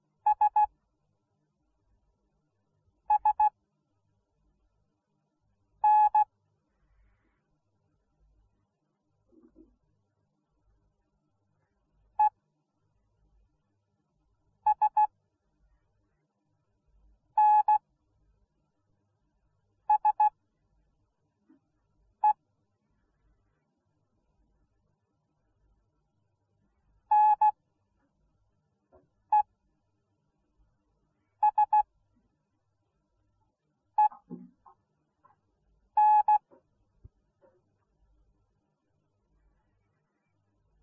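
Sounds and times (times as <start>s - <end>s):
morse code beeps: 0.3s - 0.7s, 3.1s - 3.5s, 5.8s - 6.2s, 14.7s - 15.1s, 17.4s - 17.8s, 19.9s - 20.3s, 27.1s - 27.5s, 31.4s - 31.8s, 34.0s - 34.2s, 36.0s - 36.4s.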